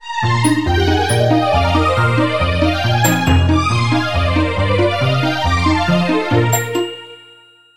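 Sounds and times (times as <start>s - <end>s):
jingle: 0.4s - 7.7s.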